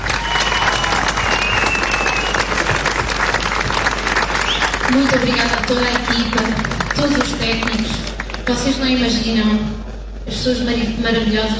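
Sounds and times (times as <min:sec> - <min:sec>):
audience applause: 0:00.0 - 0:08.5
speech: 0:04.9 - 0:11.5.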